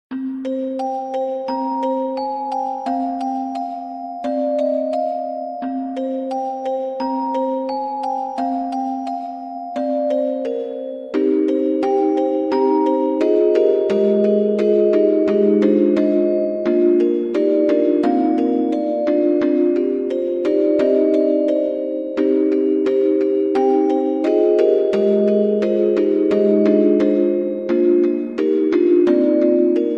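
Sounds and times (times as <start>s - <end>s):
music box: 0.1s - 29.9s.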